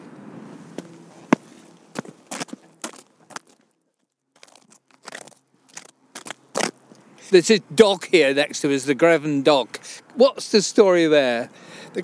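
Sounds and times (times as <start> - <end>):
footsteps of people walking beside a dock: 0.0 - 8.5
speech: 7.3 - 12.0.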